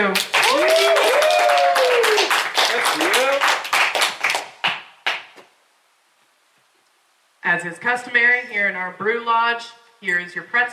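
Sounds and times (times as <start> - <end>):
audience applause: 0.0 - 5.4
speech: 7.6 - 10.7.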